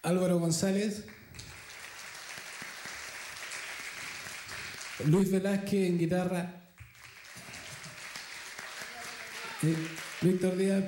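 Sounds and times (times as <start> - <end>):
speech: 0.0 - 1.5, 5.0 - 6.6, 9.6 - 10.8
audience applause: 1.2 - 5.2, 6.8 - 10.8.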